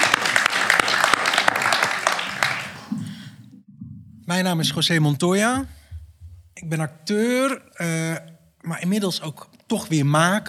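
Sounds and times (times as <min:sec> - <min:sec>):
audience applause: 0:00.0 - 0:03.4
speech: 0:04.3 - 0:05.8, 0:06.6 - 0:10.4.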